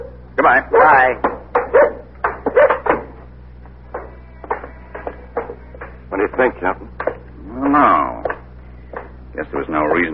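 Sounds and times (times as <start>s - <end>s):
speech: 0.4s - 1.4s, 6.4s - 7.0s, 7.7s - 8.1s, 9.4s - 10.1s
dog barking: 1.6s - 3.0s.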